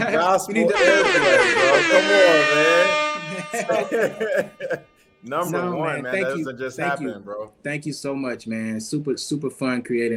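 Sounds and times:
siren sound effect: 0:00.0 - 0:04.6
laughter: 0:00.0 - 0:07.1
speech: 0:00.2 - 0:10.1.

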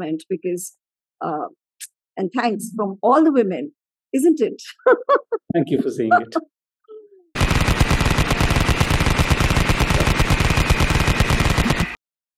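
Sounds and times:
speech: 0:00.0 - 0:06.5
automatic gunfire from the video game Call of Duty: 0:07.4 - 0:12.0
laughter: 0:11.5 - 0:12.3.

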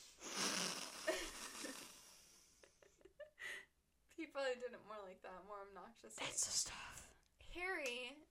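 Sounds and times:
person imitating sniffing: 0:00.0 - 0:02.4
speech: 0:04.4 - 0:08.3.

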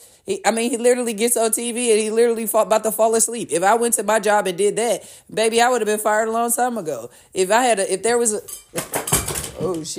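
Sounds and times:
speech: 0:00.2 - 0:09.0, 0:09.6 - 0:09.9
small water bottle falling off a table and clattering: 0:08.6 - 0:09.9.

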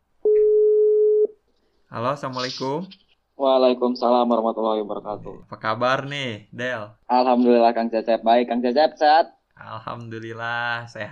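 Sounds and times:
telephone line tone while placing call: 0:00.2 - 0:01.3
speech: 0:01.9 - 0:11.1.

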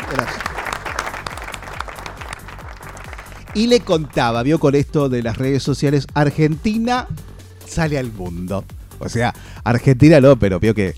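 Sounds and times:
applause: 0:00.0 - 0:04.4
speech: 0:03.6 - 0:10.9.

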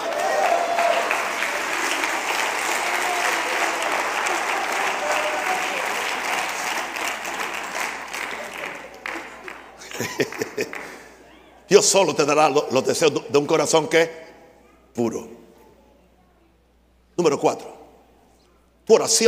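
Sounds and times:
applause: 0:00.0 - 0:11.2
laughter: 0:01.9 - 0:11.4
speech: 0:11.7 - 0:14.2, 0:15.0 - 0:15.4, 0:17.2 - 0:17.8, 0:18.9 - 0:19.2.

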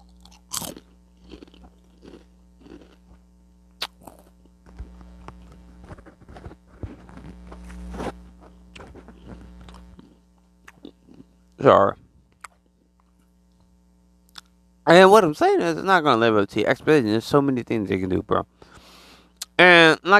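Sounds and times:
person crunching and chewing a chip: 0:00.0 - 0:03.2, 0:03.8 - 0:07.3, 0:08.4 - 0:11.3
faint low hum: 0:00.0 - 0:20.1
speech: 0:11.6 - 0:12.0, 0:14.9 - 0:18.5, 0:19.6 - 0:20.1.

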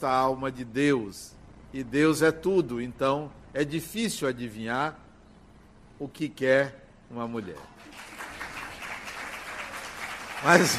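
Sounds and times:
speech: 0:00.0 - 0:05.0, 0:06.0 - 0:08.1, 0:10.4 - 0:10.7
crowd applauding: 0:07.8 - 0:10.7.

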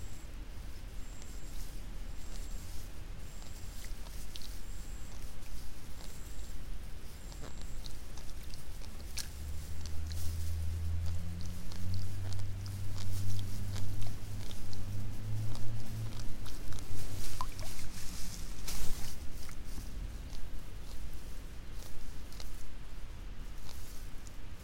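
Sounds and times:
low droning hum: 0:00.0 - 0:24.6
rice seedlings being pulled, rustling and snapping: 0:07.3 - 0:22.6.

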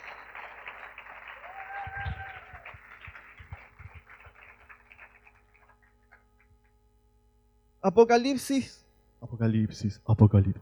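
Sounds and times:
audience applause: 0:00.0 - 0:06.2
speech: 0:07.8 - 0:08.8, 0:09.4 - 0:10.6.

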